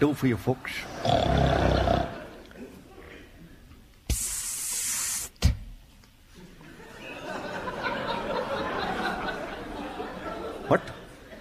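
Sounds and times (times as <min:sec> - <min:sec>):
speech: 0:00.0 - 0:01.6
laughter: 0:00.8 - 0:03.6, 0:06.3 - 0:11.3
recording of loud snoring: 0:00.9 - 0:02.3
breathy hiss: 0:04.0 - 0:05.5.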